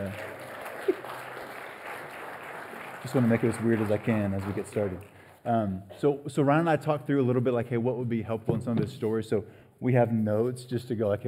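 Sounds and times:
audience clapping: 0.0s - 5.4s
speech: 3.0s - 11.2s.

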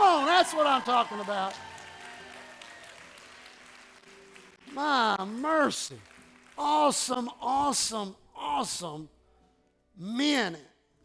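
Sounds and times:
crowd clapping: 0.0s - 7.4s
speech: 0.4s - 1.7s, 4.7s - 9.2s, 10.0s - 10.7s.

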